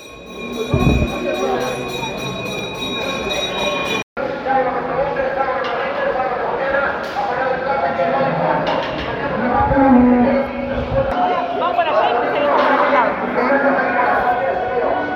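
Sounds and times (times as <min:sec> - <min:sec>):
auction bell ringing to announce sale: 0:00.0 - 0:04.0
crowd noise and chatter: 0:00.3 - 0:15.1.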